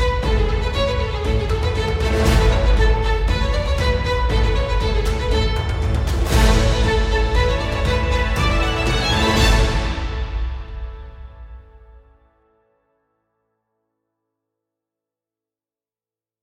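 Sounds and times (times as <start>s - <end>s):
upbeat instrumental music: 0.0s - 12.0s.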